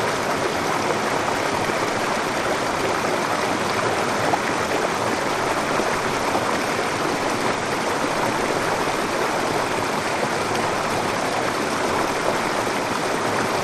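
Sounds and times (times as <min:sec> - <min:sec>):
medium waterfall: 0:00.0 - 0:13.6.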